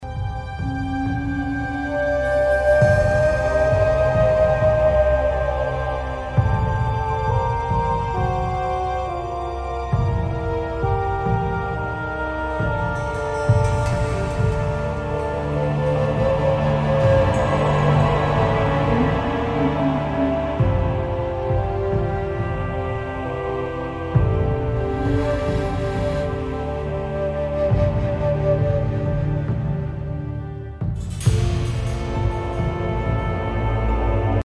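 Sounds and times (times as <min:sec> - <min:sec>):
music: 0:00.0 - 0:34.4.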